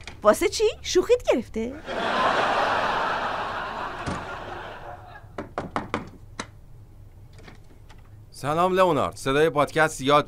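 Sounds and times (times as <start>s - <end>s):
speech: 0.2s - 2.4s, 8.4s - 10.2s
laughter: 1.8s - 5.3s
knocking on a door: 5.4s - 6.2s.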